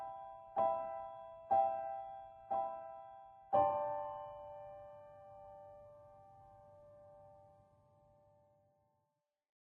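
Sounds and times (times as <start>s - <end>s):
piano tune: 0.0s - 7.5s.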